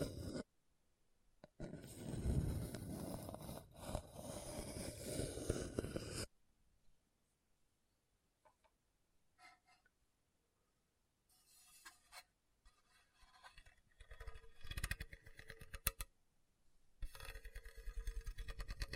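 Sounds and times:
scratching across a hard bumpy surface: 0.0s - 0.5s, 1.5s - 6.3s, 11.3s - 16.0s, 17.0s - 18.9s.

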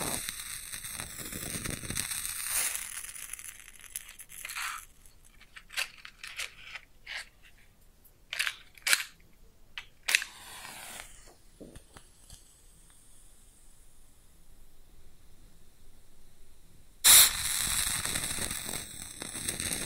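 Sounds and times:
bright flare: 0.0s - 6.6s, 9.8s - 13.9s, 17.0s - 19.8s
match struck and lit: 0.0s - 7.3s, 9.8s - 13.2s, 17.0s - 19.8s
low steady hiss: 0.0s - 19.8s.

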